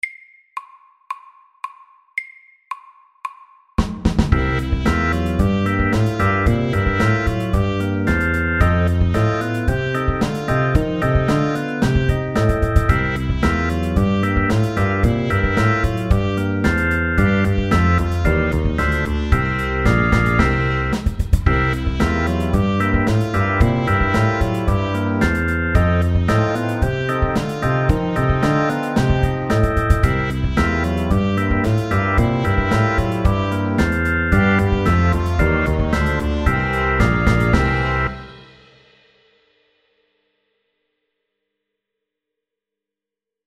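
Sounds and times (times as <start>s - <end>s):
fast eight-bar blues music: 4.3s - 38.4s.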